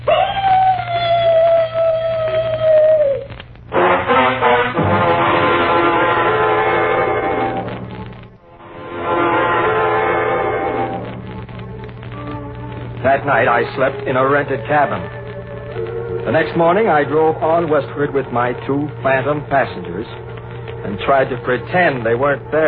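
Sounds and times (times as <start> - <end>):
mournful dog howl: 0.0 - 3.3, 13.4 - 21.9
loud dense rumbling noise: 3.3 - 22.6
speech: 13.3 - 15.2, 16.3 - 22.6.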